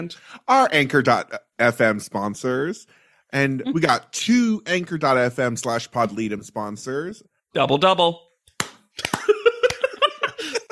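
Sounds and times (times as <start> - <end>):
speech: 0.0 - 8.3
slow hand clapping: 8.5 - 10.0
laughter: 9.0 - 10.6.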